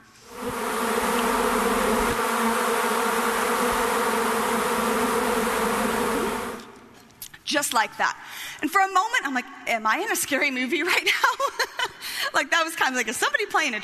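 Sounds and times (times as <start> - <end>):
swarm of bees buzzing in a backyard: 0.1 - 6.8
speech: 7.5 - 13.8.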